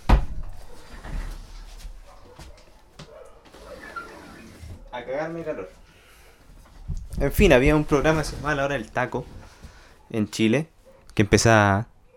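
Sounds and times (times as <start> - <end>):
window sliding shut with a thump and rattling frame: 3.5 - 4.9
speech: 5.0 - 5.8, 7.2 - 9.4, 10.1 - 11.9.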